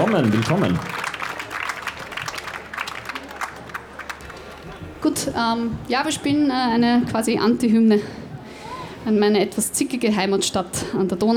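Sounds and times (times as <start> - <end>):
speech: 0.0 - 1.0, 5.0 - 8.2, 9.0 - 11.3
audience applause: 0.0 - 4.9.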